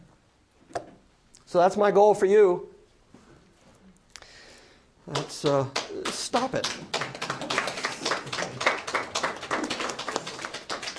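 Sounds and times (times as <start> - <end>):
speech: 1.5 - 2.7, 5.3 - 7.0
smattering of applause: 5.1 - 10.9.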